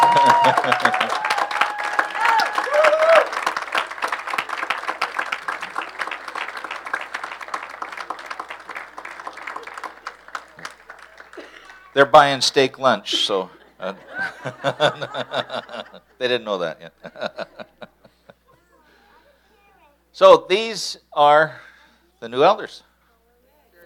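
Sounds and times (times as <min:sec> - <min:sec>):
laughter: 0:00.0 - 0:01.4, 0:05.5 - 0:12.0, 0:13.0 - 0:18.8
audience applause: 0:00.0 - 0:12.0
speech: 0:00.5 - 0:01.2, 0:12.0 - 0:17.6, 0:20.2 - 0:22.9.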